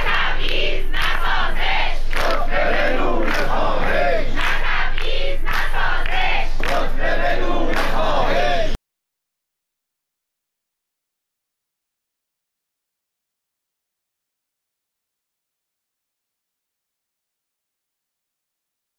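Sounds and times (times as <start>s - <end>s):
protesters chanting slogans: 0.0s - 8.8s.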